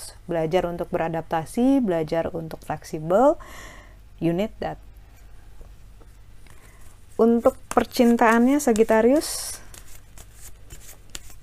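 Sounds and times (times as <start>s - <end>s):
low steady hum: 0.0s - 11.4s
speech: 0.3s - 4.9s, 7.2s - 9.6s
tarot cards being shuffled: 6.5s - 11.4s.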